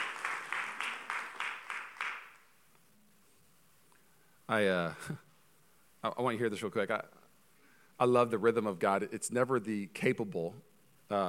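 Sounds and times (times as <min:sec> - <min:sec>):
audience clapping: 0:00.0 - 0:02.5
speech: 0:04.5 - 0:05.3, 0:06.0 - 0:07.2, 0:08.0 - 0:11.2.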